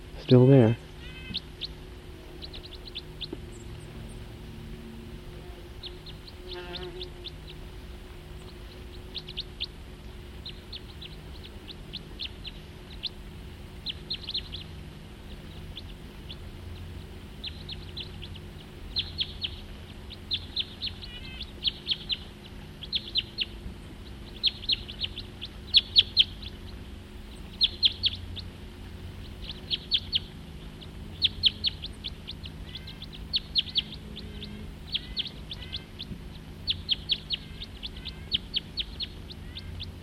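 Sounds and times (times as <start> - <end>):
crossbills giving short high chirping calls: 0.0 - 40.0
steady low hum: 0.0 - 40.0.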